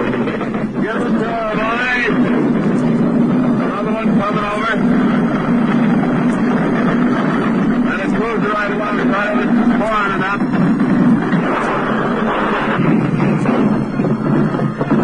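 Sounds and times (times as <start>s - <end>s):
gunfire: 0.0s - 15.0s
warplane flying overhead: 0.0s - 15.0s.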